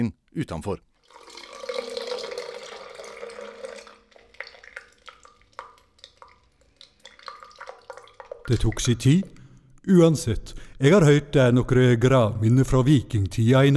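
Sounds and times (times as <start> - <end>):
speech: 0.0 - 0.9, 8.5 - 13.7
peeing in toilet: 1.0 - 9.5.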